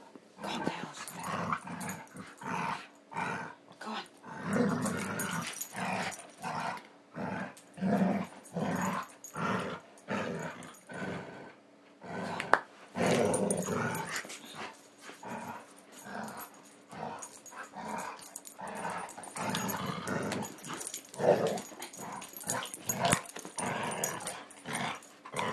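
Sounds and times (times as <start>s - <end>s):
dogs growling playing tug with a rubber ring: 0.4s - 25.5s.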